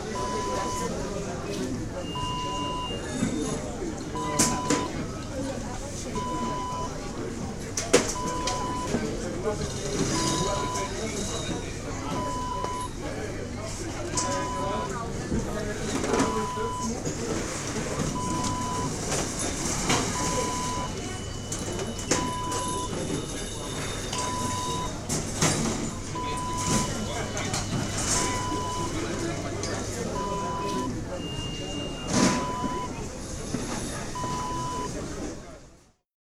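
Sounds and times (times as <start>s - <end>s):
airport security checkpoint noise: 0.0s - 35.3s.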